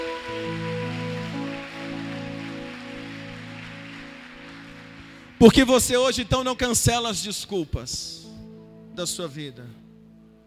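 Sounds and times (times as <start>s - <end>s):
audience applause: 0.0s - 6.8s
speech: 5.4s - 8.2s, 9.0s - 9.8s.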